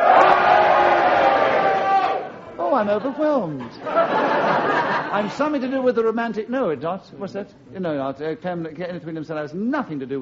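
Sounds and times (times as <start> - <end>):
audience cheering and booing on cue: 0.0 - 2.6
laughter: 2.6 - 5.4
speech: 2.8 - 10.2.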